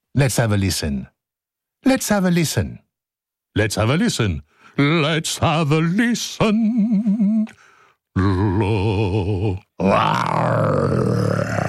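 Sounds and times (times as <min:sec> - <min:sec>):
speech: 0:00.2 - 0:01.2, 0:01.8 - 0:02.8, 0:03.6 - 0:11.6
person imitating a lion roar: 0:08.2 - 0:11.6.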